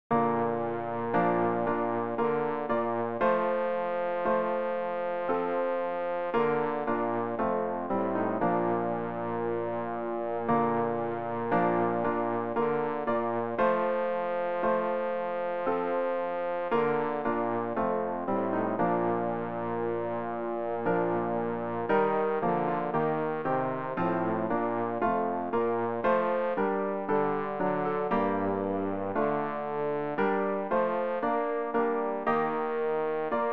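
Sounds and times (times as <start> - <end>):
bass practice aid: 0.1 - 33.5.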